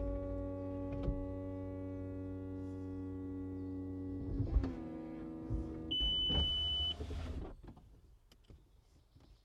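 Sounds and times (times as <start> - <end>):
electronic car roof moving into boot: 0.0 - 7.8
car bleeps: 5.9 - 7.0.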